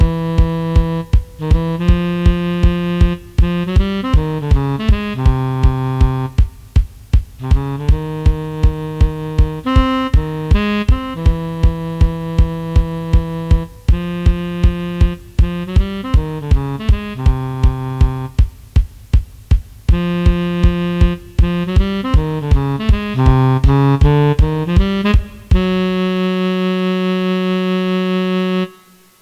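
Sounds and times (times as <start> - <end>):
tenor sax playing jazz standard at 160 bpm: 0.0 - 18.8, 19.8 - 29.2.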